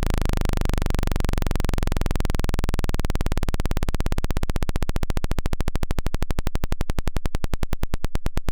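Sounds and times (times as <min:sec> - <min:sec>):
DVCO sawtooth synthesizer sweep: 0:00.0 - 0:08.4.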